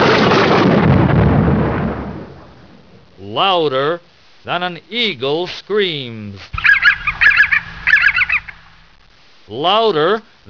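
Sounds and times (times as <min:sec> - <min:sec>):
thunder clap: 0:00.0 - 0:03.0, 0:06.6 - 0:09.0
speech: 0:03.4 - 0:06.7, 0:09.5 - 0:10.4.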